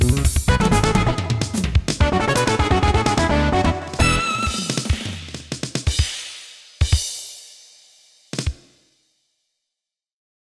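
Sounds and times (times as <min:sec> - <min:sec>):
fusion music: 0:00.0 - 0:05.6.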